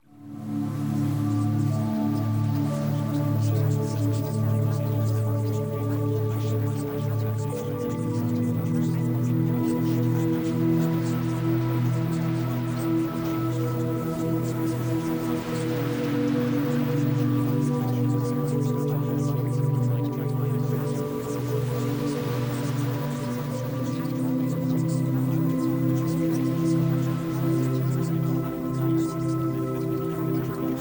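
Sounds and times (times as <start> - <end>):
music: 0.0 - 30.7.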